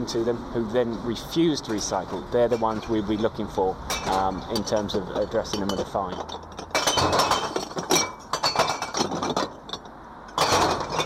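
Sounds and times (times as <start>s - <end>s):
speech: 0.0s - 7.2s
glass bottles clinking as box is emptied into truck: 3.9s - 11.0s.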